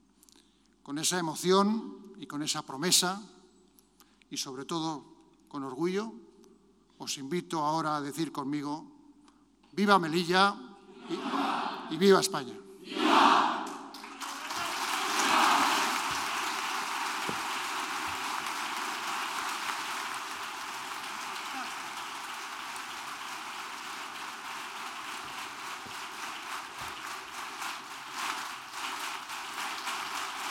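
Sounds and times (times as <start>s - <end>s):
speech: 0.9s - 3.4s, 4.3s - 6.2s, 7.0s - 8.9s, 9.8s - 13.4s
applause after a speech by King Felipe VI in Melilla: 13.6s - 30.4s.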